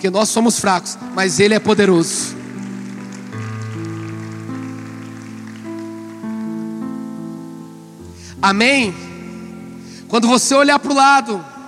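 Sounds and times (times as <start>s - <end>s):
speech: 0.0s - 2.4s, 8.4s - 9.0s, 10.1s - 11.5s
audience applause: 1.1s - 6.8s.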